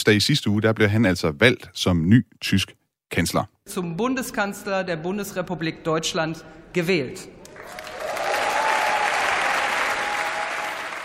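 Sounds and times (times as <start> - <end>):
speech: 0.0 - 7.8
applause in the German Bundestag in Berlin for the newly elected chancellor: 7.5 - 11.0.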